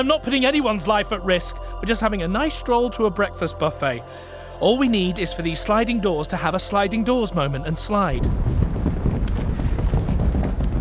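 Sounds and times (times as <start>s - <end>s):
speech: 0.0s - 8.6s
galloping stampede: 8.2s - 10.7s.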